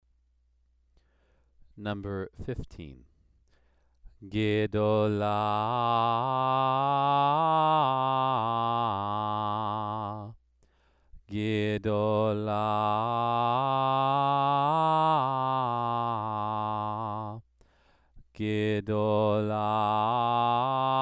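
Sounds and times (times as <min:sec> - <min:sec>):
Torah trope cantillation exercise: 0:04.2 - 0:10.4, 0:11.3 - 0:17.4, 0:18.4 - 0:21.0.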